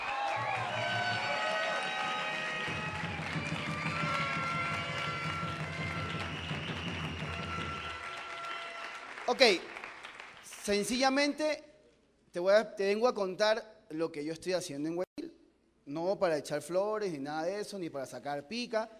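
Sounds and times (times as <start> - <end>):
crowd noise: 0.0 - 8.6
audience applause: 0.0 - 10.7
speech: 9.3 - 9.7, 10.6 - 11.7, 12.4 - 15.0, 15.9 - 18.9.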